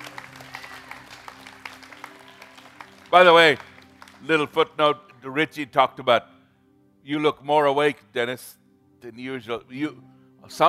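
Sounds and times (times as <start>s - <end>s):
church congregation clapping for the worship team: 0.0s - 4.5s
speech: 3.1s - 6.3s, 7.0s - 10.6s.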